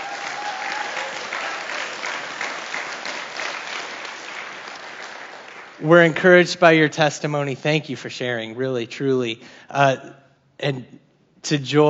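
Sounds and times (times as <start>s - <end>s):
audience round of applause: 0.0s - 6.0s
speech: 5.8s - 11.8s.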